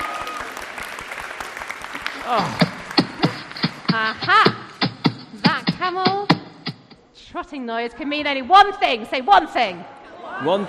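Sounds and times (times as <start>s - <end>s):
audience applause: 0.0s - 3.9s
speech: 2.3s - 2.7s, 3.9s - 4.5s, 5.9s - 6.3s, 7.3s - 10.6s.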